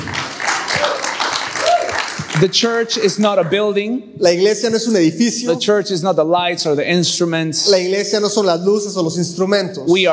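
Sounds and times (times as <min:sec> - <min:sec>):
church audience applauding: 0:00.0 - 0:03.8
speech: 0:02.4 - 0:10.1.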